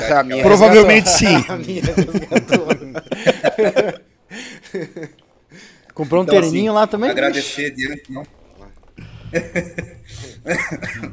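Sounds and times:
speech: 0.0 - 4.1, 6.0 - 8.4, 9.3 - 11.1
laughter: 1.6 - 5.7, 9.0 - 11.1
person coughing: 9.4 - 11.1.

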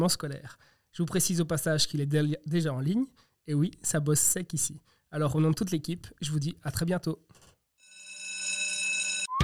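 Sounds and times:
speech: 0.0 - 7.4
school bell ringing: 7.9 - 9.3.

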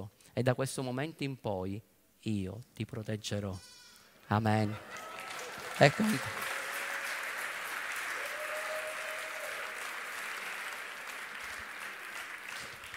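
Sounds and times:
speech: 0.4 - 5.1, 5.8 - 6.4
audience applauding: 4.6 - 12.9.

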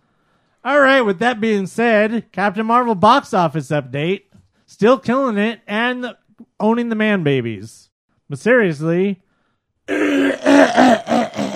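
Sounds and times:
speech: 0.6 - 9.2, 9.9 - 11.2
person clearing throat: 9.9 - 11.5.

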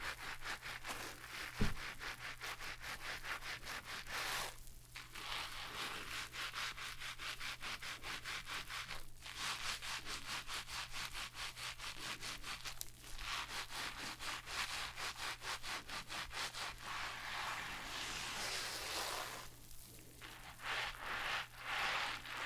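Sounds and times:
hair being shampooed and brushed: 0.0 - 22.4
sharp tap: 1.6 - 1.8.

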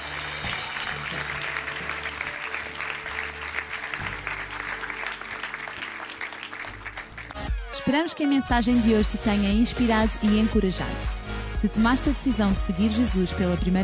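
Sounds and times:
audience applause: 0.0 - 7.6
speech: 7.9 - 13.8.

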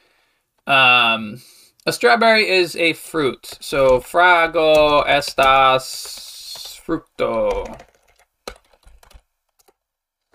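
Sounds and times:
speech: 0.7 - 6.3, 6.9 - 7.9
typing on a computer keyboard: 3.4 - 10.3.

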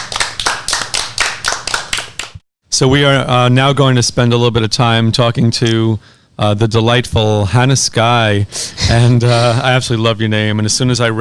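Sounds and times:
audience applause: 0.0 - 2.2
speech: 2.8 - 11.1.

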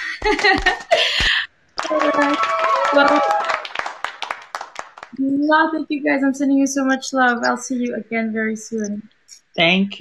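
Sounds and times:
speech: 0.2 - 1.1, 1.8 - 3.4, 5.1 - 9.9
clapping: 0.2 - 5.2.

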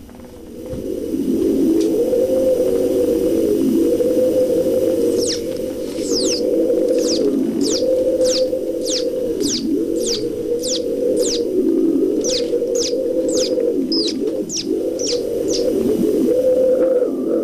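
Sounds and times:
musical instrument imitating wind with loud whooshing drone: 0.9 - 17.4
quick high bird-like chirping whistles: 5.0 - 16.0.

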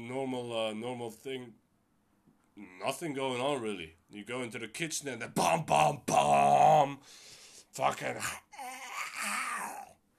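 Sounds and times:
speech: 0.1 - 1.6, 2.6 - 8.4
person's voice imitating an alligator: 2.6 - 3.1, 5.4 - 7.0, 8.0 - 10.0.

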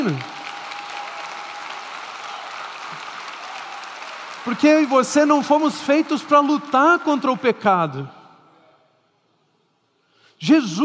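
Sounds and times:
speech: 0.0 - 0.3, 4.4 - 8.2, 10.4 - 10.8
audience applause: 0.0 - 7.2.

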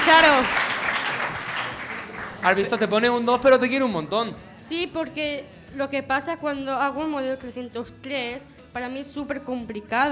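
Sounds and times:
group applauding: 0.0 - 3.3
speech: 0.1 - 0.7, 2.4 - 10.1.

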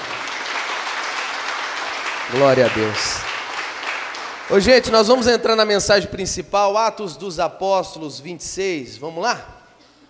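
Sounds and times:
audience applause: 0.0 - 5.6
speech: 2.3 - 3.3, 4.5 - 9.6.

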